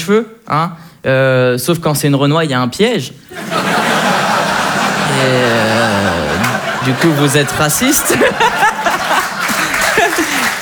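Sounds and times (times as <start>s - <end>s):
speech: 0.0s - 4.2s, 5.2s - 6.2s, 6.8s - 9.2s
audience applause: 3.3s - 10.6s
voices and chuckles: 3.3s - 10.6s.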